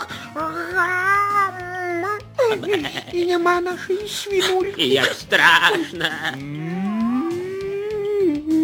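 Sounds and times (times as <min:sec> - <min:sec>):
laughter: 0:00.0 - 0:07.7
speech: 0:02.5 - 0:06.8
cow mooing: 0:06.3 - 0:08.5.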